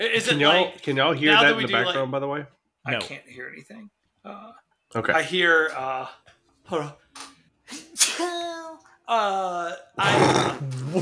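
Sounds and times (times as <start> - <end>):
speech: 0.0 - 7.3, 9.1 - 11.0
person sneezing: 7.7 - 8.4.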